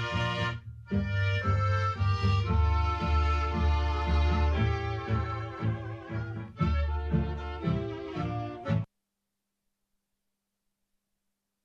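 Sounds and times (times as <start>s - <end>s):
tango music: 0.0s - 8.9s.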